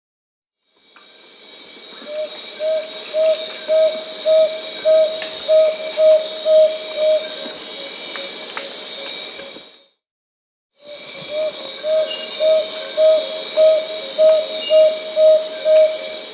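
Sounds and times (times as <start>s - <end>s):
Tawny-bellied screech owl trill of low hooting pulses in South America: 2.0s - 7.4s, 10.8s - 16.3s.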